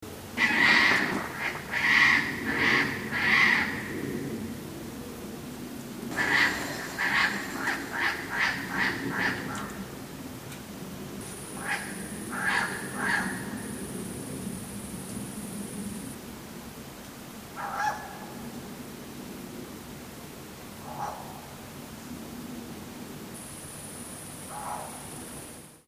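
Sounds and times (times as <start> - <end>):
owl: 0.4 - 4.1, 6.1 - 9.8, 11.4 - 13.8, 17.6 - 18.2, 20.8 - 21.4, 24.4 - 25.2.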